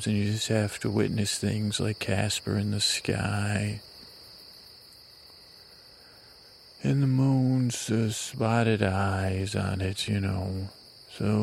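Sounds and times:
speech: 0:00.0 - 0:03.9, 0:06.8 - 0:11.4
chorus of night insects chirping outdoors: 0:00.0 - 0:11.4.

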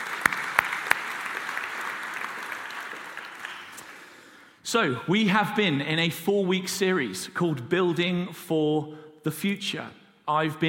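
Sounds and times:
audience applause: 0:00.0 - 0:04.3
speech: 0:04.7 - 0:10.6.

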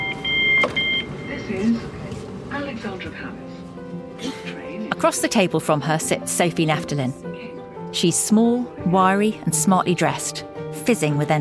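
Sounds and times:
packed commuter train heading out of London: 0:00.0 - 0:04.9
speech: 0:01.6 - 0:03.5, 0:05.0 - 0:11.3.

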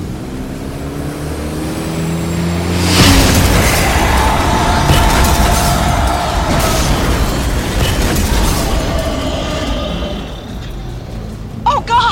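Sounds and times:
car engine humming: 0:00.0 - 0:12.1
roaring rumble with scattered crackles and debris bursts: 0:02.5 - 0:11.6
car explosion: 0:03.0 - 0:10.5.

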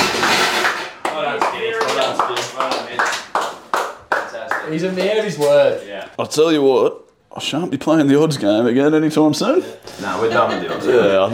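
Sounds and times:
round of applause: 0:00.0 - 0:05.2
speech: 0:01.3 - 0:03.2, 0:04.7 - 0:11.3.

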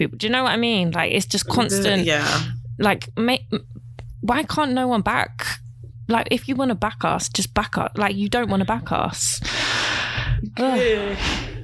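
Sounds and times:
speech: 0:00.0 - 0:05.5, 0:06.1 - 0:11.5
long vocal yawn: 0:10.5 - 0:11.6.

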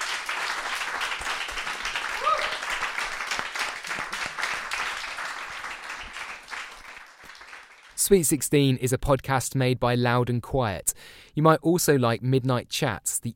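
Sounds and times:
crowd applauding: 0:00.0 - 0:08.0
person whooping: 0:02.1 - 0:02.8
speech: 0:08.1 - 0:13.3.

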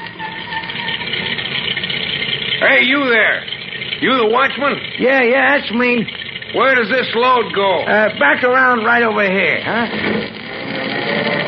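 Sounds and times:
delivery truck arriving, engine idling: 0:00.0 - 0:11.4
speech: 0:02.6 - 0:10.3.

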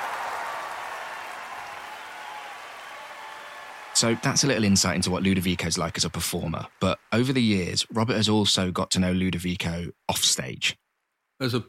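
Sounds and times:
concert audience screaming: 0:00.0 - 0:05.7
concert audience applauding wildly: 0:00.0 - 0:07.8
speech: 0:04.0 - 0:10.8, 0:11.4 - 0:11.6.

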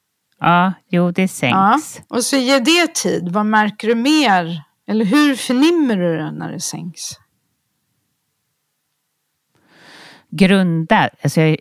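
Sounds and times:
speech: 0:00.4 - 0:07.2, 0:10.3 - 0:11.5
deep breath in: 0:09.6 - 0:10.3.

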